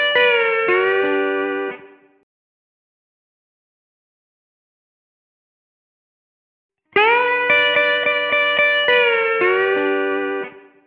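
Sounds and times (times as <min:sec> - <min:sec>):
slide guitar in G at 110 BPM: 0:00.0 - 0:02.0, 0:07.0 - 0:10.8.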